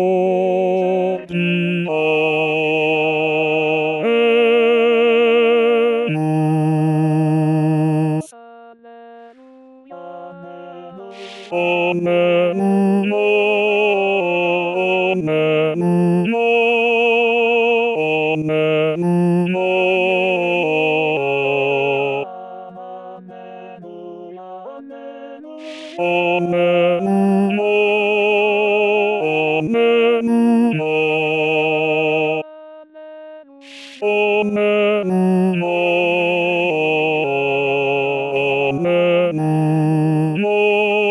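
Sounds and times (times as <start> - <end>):
bass voice singing in D-flat major: 0.0 - 8.3, 11.2 - 16.9, 17.9 - 22.2, 25.6 - 32.4, 33.7 - 41.0.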